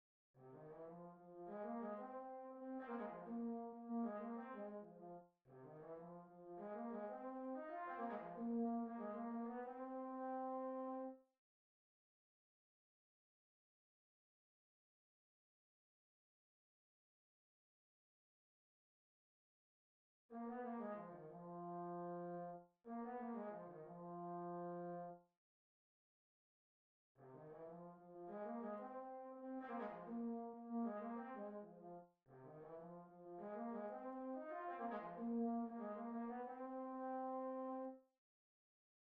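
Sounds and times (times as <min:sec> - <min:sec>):
trombone: 0:00.4 - 0:11.1, 0:20.3 - 0:25.1, 0:27.2 - 0:37.9.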